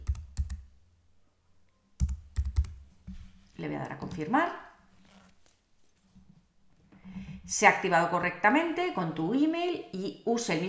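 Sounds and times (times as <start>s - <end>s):
keyboard clicks typing a six-digit verification code: 0.0s - 0.7s, 2.0s - 2.8s
speech: 3.6s - 4.6s, 7.5s - 10.6s.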